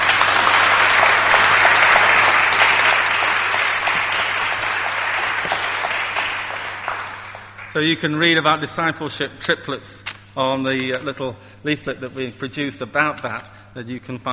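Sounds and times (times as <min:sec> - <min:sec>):
audience applause: 0:00.0 - 0:08.2
speech: 0:07.8 - 0:14.3.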